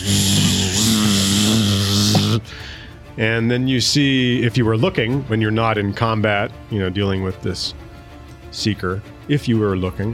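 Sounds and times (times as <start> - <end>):
voice imitating a buzzing sound: 0.0 - 2.5
speech: 3.2 - 7.8, 8.6 - 10.1.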